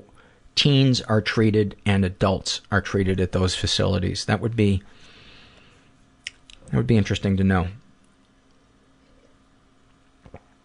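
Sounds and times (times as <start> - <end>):
speech: 0.6 - 5.1, 6.7 - 7.8
person sipping tea: 8.4 - 10.6.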